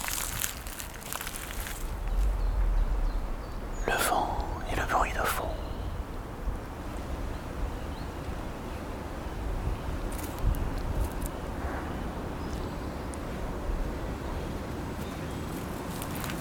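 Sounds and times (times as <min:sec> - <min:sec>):
tree creaking in wind: 0:00.0 - 0:03.0
wind in Lamothe: 0:00.0 - 0:16.3
anthill ambience: 0:03.8 - 0:05.9.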